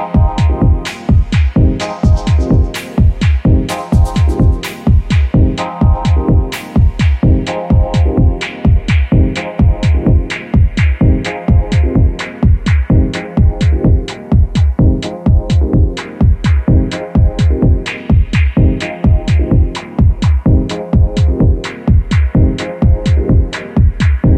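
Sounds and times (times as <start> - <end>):
dub harmonics: 0.0 - 24.3.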